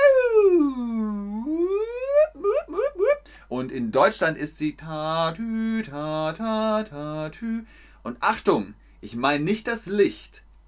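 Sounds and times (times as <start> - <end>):
voice imitating an American emergency siren: 0.0 - 3.2
speech: 3.6 - 10.6.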